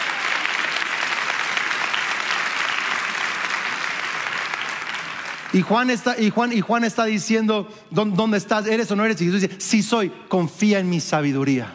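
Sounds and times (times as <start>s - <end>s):
audience applauding: 0.0s - 7.0s
speech: 5.5s - 11.7s.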